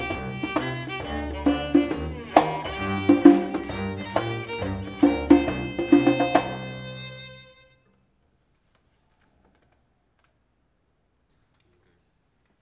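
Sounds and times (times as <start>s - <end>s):
combo jam: 0.0s - 7.5s.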